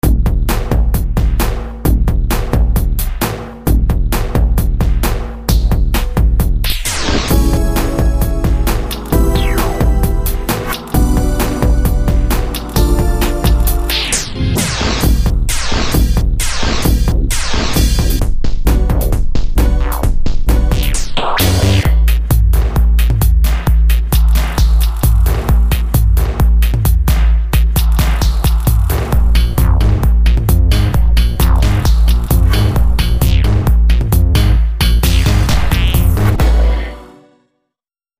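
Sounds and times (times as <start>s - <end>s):
subversive techno drum kit: 0.0s - 36.8s.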